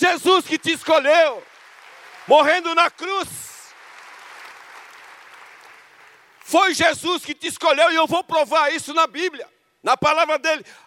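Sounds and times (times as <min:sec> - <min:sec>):
speech: 0:00.0 - 0:01.5, 0:02.3 - 0:03.5, 0:06.5 - 0:10.8
applause: 0:00.0 - 0:07.0.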